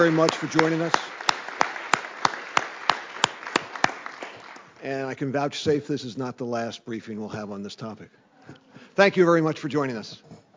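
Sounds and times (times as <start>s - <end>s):
speech: 0.0s - 1.1s, 4.8s - 10.4s
audience applause: 0.0s - 4.8s.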